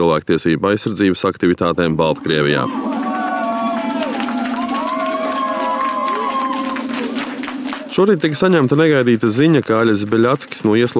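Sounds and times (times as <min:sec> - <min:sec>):
speech: 0:00.0 - 0:03.0, 0:08.0 - 0:10.9
crowd of supporters cheering at Minsk railway station: 0:02.2 - 0:08.4
scattered clapping: 0:02.8 - 0:10.9.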